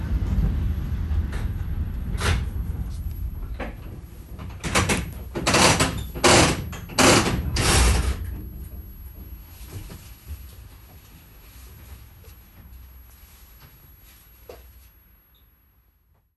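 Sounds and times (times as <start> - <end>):
K Wagen driving: 0.0 - 13.1.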